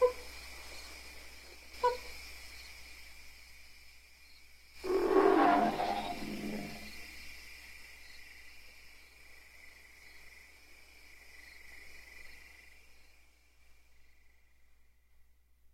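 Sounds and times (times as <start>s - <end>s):
low background hiss: 0.0s - 15.7s
ape rasping growl-scream: 4.8s - 7.0s.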